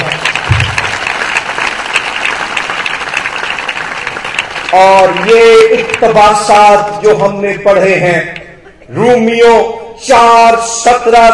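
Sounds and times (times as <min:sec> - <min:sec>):
audience applause: 0:00.0 - 0:06.4
speech: 0:04.7 - 0:11.3.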